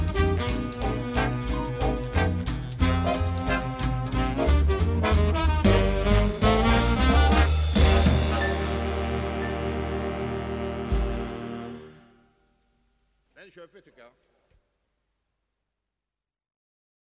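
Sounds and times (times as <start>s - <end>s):
vintage jazz big band playing: 0.0s - 12.3s.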